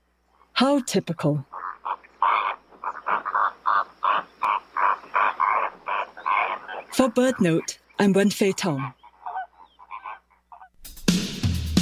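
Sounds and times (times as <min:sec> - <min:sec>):
speech: 0:00.6 - 0:01.5, 0:07.0 - 0:09.0
greater flamingos chattering with harsh nasal honking calls: 0:01.4 - 0:07.8, 0:08.5 - 0:10.8.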